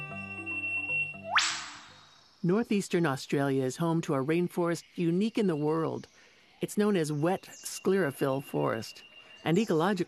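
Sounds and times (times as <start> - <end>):
eastern whipbird call: 1.3 - 2.0
speech: 2.4 - 10.0.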